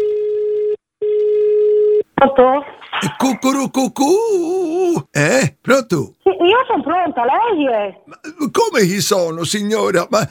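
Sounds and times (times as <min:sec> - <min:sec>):
ringback tone of an outgoing phone call: 0:00.0 - 0:02.0
speech: 0:02.2 - 0:10.2.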